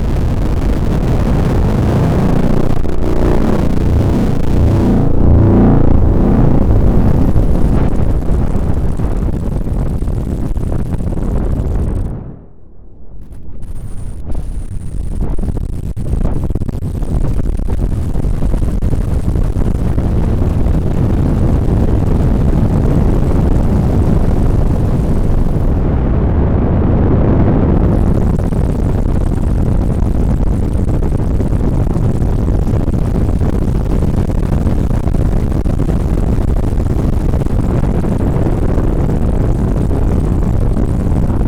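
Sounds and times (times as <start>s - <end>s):
noise with delay effect: 0.0s - 41.4s.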